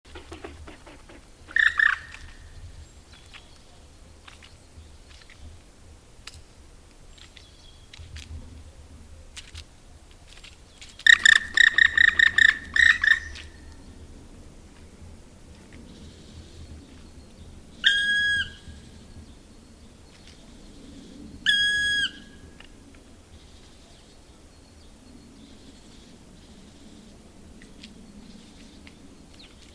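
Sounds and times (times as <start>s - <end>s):
black woodpecker calling: 0.1s - 2.6s, 11.0s - 13.8s, 17.8s - 19.0s, 20.9s - 22.6s.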